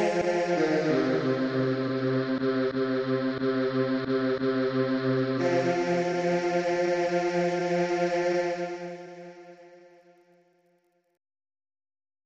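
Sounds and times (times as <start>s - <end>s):
bass: 0.2s - 8.7s.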